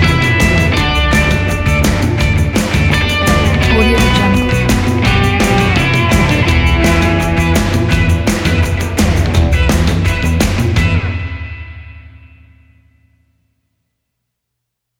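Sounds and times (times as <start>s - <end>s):
rock promo music: 0.0s - 11.5s.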